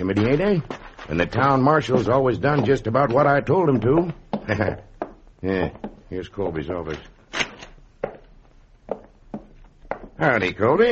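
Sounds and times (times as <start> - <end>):
speech: 0.1 - 7.2, 10.2 - 10.9
door opening and shutting with wooden clunks: 7.3 - 7.8.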